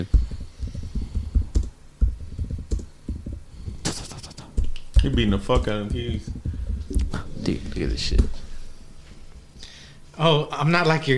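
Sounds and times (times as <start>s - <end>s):
typing a search query on a computer keyboard: 0.1s - 7.5s
speech: 5.0s - 6.4s, 7.4s - 8.4s, 10.2s - 11.1s.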